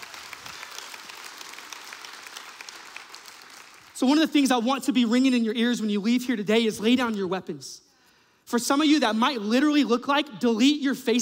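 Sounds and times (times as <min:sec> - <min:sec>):
audience applause: 0:00.0 - 0:04.0
speech: 0:04.0 - 0:07.9, 0:08.5 - 0:11.1.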